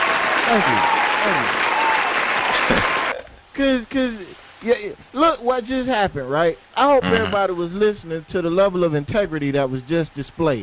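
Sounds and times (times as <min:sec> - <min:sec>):
studio audience applause: 0:00.0 - 0:03.2
speech: 0:00.5 - 0:01.6, 0:03.6 - 0:10.6.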